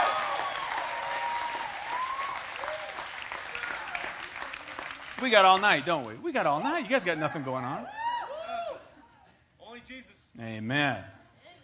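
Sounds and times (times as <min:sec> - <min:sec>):
audience round of applause: 0:00.0 - 0:06.1
speech: 0:05.2 - 0:08.0, 0:10.0 - 0:11.2.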